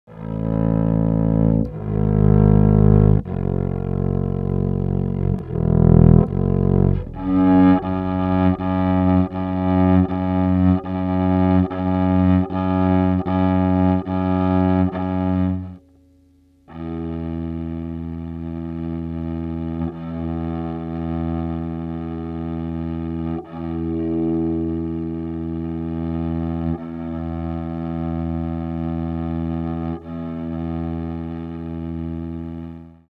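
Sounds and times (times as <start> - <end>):
bowed double bass: 0.1 - 16.0, 16.7 - 33.1.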